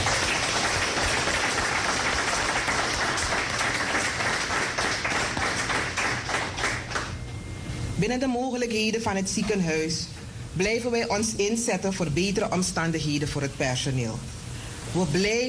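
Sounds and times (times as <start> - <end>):
audience applause: 0.0 - 7.2
speech: 8.0 - 15.4.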